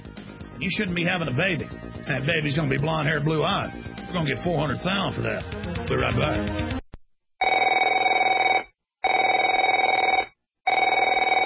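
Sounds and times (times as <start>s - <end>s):
speech: 0.6s - 6.8s
telephone ringing: 7.4s - 11.4s.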